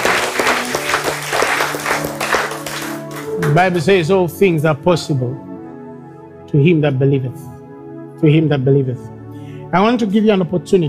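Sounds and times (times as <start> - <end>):
audience clapping: 0.0 - 3.9
speech: 3.6 - 5.5, 6.5 - 7.5, 8.2 - 9.1, 9.7 - 10.8.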